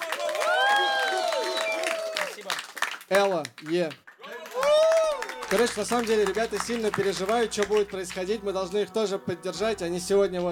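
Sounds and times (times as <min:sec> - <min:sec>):
audience applause and clapping: 0:00.0 - 0:08.4
speech: 0:03.1 - 0:04.0, 0:05.5 - 0:10.5.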